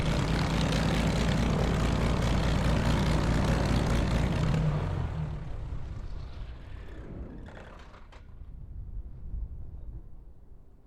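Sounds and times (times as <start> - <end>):
RAAF CT4 training aircraft taxiing: 0.0 - 8.2.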